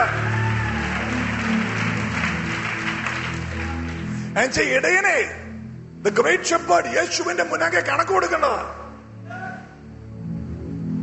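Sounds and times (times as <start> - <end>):
church congregation clapping: 0.0 - 5.0
speech: 4.4 - 5.4, 6.0 - 8.8.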